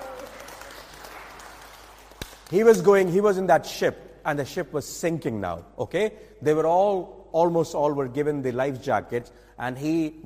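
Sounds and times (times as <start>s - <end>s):
audience clapping for a student in a class: 0.0s - 3.4s
speech: 2.5s - 10.2s.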